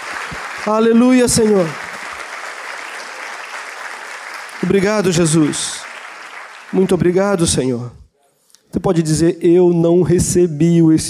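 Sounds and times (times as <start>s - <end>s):
audience applauding: 0.0s - 7.8s
speech: 0.6s - 1.8s, 4.6s - 5.8s, 6.7s - 8.0s, 8.7s - 11.0s.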